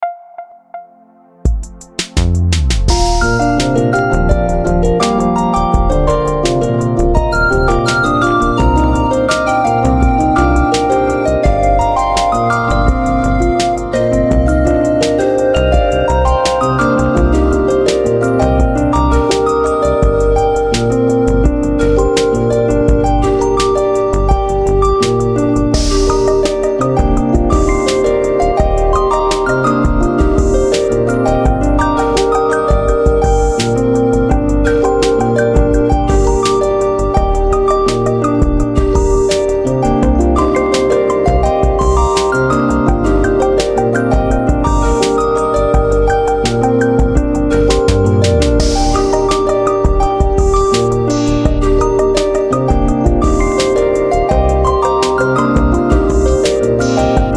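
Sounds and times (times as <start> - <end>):
fantasy forest music remix: 0.0 - 57.3.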